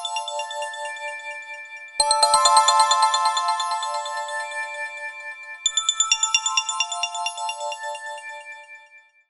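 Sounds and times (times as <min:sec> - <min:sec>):
echoing phone ringtone: 0:02.0 - 0:07.9.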